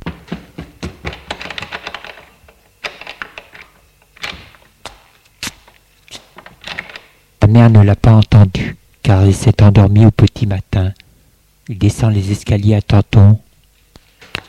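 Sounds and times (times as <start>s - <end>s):
front door thunks: 0.0s - 1.9s
speech: 7.5s - 11.0s, 11.7s - 13.5s.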